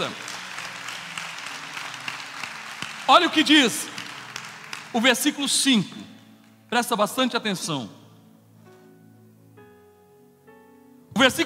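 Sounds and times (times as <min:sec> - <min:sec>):
speech: 0:00.0 - 0:00.2, 0:03.1 - 0:04.0, 0:04.9 - 0:06.1, 0:06.7 - 0:08.0, 0:11.2 - 0:11.4
audience applauding: 0:00.0 - 0:06.7.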